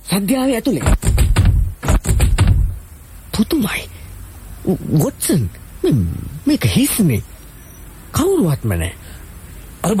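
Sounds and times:
speech: 0:00.1 - 0:01.1, 0:03.4 - 0:04.0, 0:04.6 - 0:07.3, 0:08.1 - 0:09.1
door being broken down: 0:00.8 - 0:02.8.

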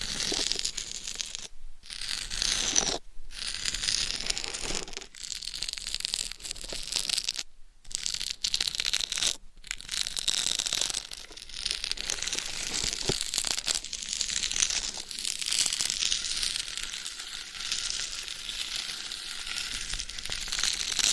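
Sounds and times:
scratching and rubbing on a dummy head microphone's cover: 0:00.0 - 0:21.1.

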